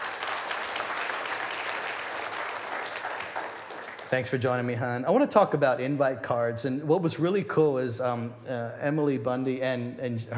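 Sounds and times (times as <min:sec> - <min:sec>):
audience applause welcoming a speaker back to the stage: 0:00.0 - 0:04.4
speech: 0:04.1 - 0:10.3.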